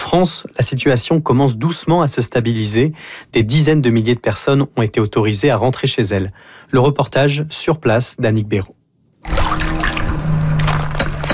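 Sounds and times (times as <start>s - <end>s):
speech: 0.1s - 9.9s
water sloshing as a skimming net is dipped into a backyard swimming pool: 9.2s - 11.3s.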